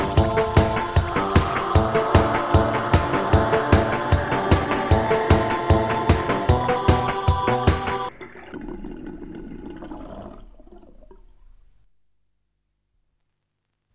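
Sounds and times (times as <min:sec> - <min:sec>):
8-bit music: 0:00.0 - 0:08.1
guitar: 0:00.0 - 0:08.1.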